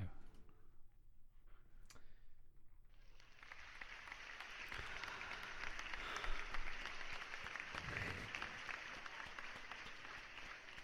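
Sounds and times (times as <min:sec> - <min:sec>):
reserved studio applause: 0:03.0 - 0:10.8.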